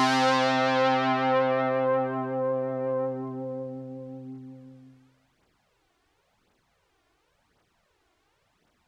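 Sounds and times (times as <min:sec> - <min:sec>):
Roland JX03 synthesizer filter sweep to resonance and highpass: 0:00.0 - 0:05.1.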